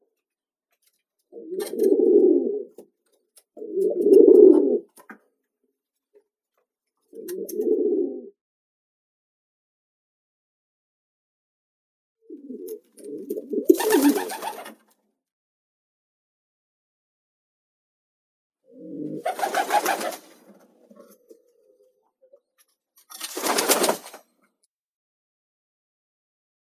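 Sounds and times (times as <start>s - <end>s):
grey rock pigeon Columba livia: 1.3s - 5.2s, 7.0s - 8.4s, 12.3s - 15.0s, 18.7s - 24.3s.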